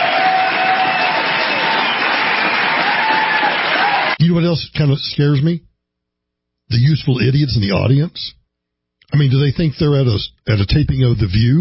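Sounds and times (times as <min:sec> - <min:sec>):
crowd cheering and applauding: 0:00.0 - 0:04.2
sustained shouts: 0:00.0 - 0:04.2
speech: 0:04.6 - 0:05.7, 0:06.7 - 0:08.4, 0:09.1 - 0:11.5.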